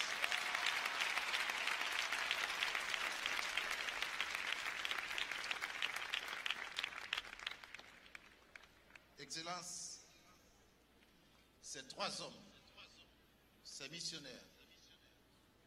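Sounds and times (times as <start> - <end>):
audience applause: 0.0 - 9.0
speech: 9.3 - 9.8, 11.7 - 12.5, 13.8 - 14.5.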